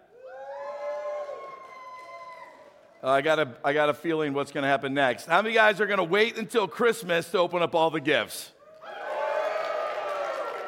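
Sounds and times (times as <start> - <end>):
audience cheering and whooping: 0.2 - 3.0, 8.8 - 10.6
speech: 3.0 - 8.6.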